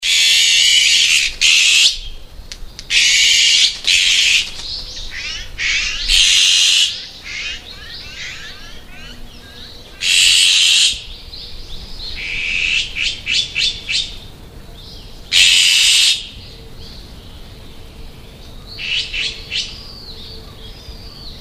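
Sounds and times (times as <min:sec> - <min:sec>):
onaga bird calling: 0:00.0 - 0:21.3.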